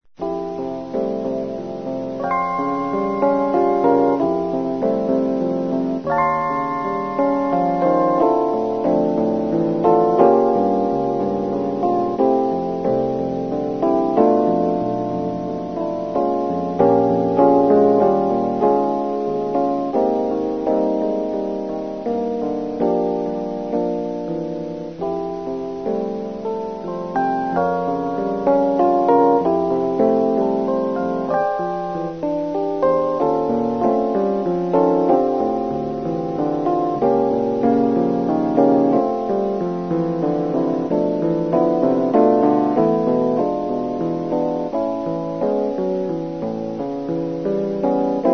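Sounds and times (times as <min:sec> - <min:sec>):
piano: 0:00.1 - 0:48.3.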